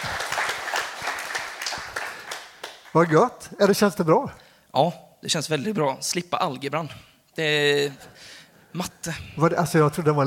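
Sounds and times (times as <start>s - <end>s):
small group clapping for a student who has just graduated: 0.0s - 3.5s
speech: 2.9s - 10.2s.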